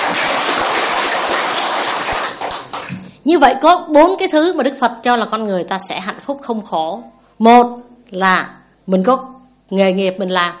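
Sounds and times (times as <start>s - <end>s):
audience applause: 0.0s - 3.1s
speech: 3.3s - 10.5s.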